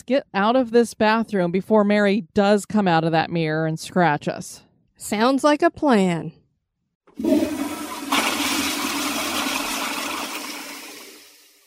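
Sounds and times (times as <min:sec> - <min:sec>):
speech: 0:00.0 - 0:06.4, 0:07.2 - 0:07.4
toilet flushing in a bathroom: 0:07.1 - 0:11.6.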